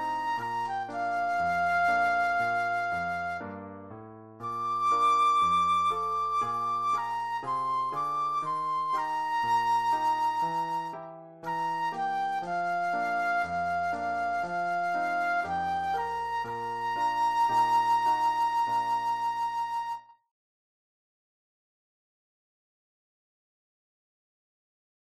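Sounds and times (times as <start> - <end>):
flute solo: 0.0 - 3.8, 4.4 - 20.2.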